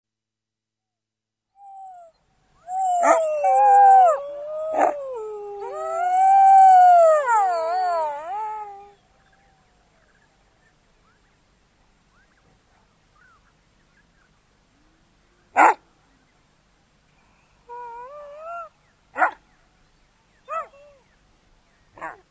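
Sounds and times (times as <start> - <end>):
Ethiopian wolf yelping, whining and howling: 1.6 - 9.0, 17.7 - 19.4.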